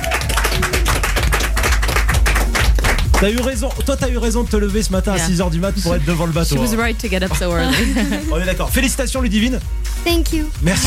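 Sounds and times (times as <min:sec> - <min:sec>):
crowd applause: 0:00.0 - 0:04.0
speech: 0:03.2 - 0:10.8
laughter: 0:05.1 - 0:08.9.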